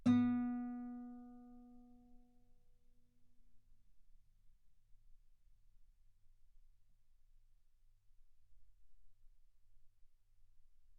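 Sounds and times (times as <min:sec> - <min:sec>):
guitar note B3: 0:00.0 - 0:01.7.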